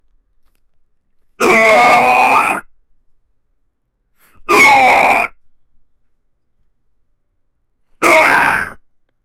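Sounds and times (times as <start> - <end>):
person straining with effort: 1.4 - 2.7, 4.3 - 5.4, 8.0 - 8.8.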